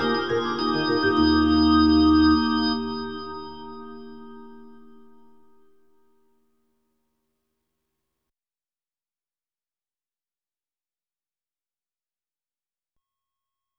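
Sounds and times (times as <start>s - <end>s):
Hammond B3 organ: 0.0s - 5.6s.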